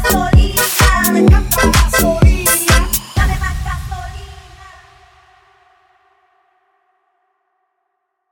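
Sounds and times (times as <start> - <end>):
mega funk music: 0.0 - 3.2.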